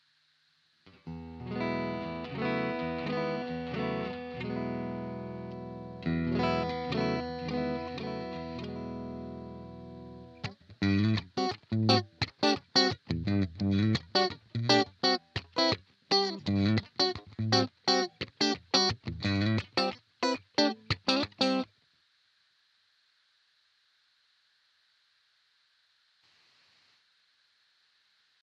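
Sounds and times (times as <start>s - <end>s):
clean Strat electric guitar through EHX 5150 DI out: 0.9s - 21.7s.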